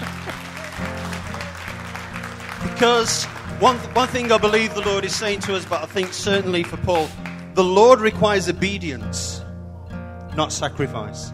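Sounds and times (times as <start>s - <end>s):
crowd round of applause: 0.0s - 8.0s
speech: 2.7s - 9.4s, 10.4s - 11.3s.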